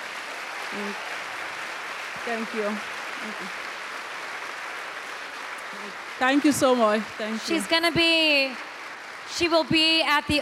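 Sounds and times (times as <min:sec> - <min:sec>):
audience applause: 0:00.0 - 0:10.3
speech: 0:00.7 - 0:01.2, 0:02.2 - 0:03.7, 0:05.7 - 0:08.7, 0:09.3 - 0:10.3.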